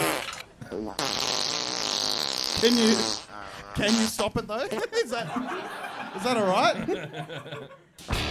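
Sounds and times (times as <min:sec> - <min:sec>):
fart: 0:00.0 - 0:04.2
speech: 0:00.7 - 0:01.2, 0:02.6 - 0:08.2
laughter: 0:04.8 - 0:08.0.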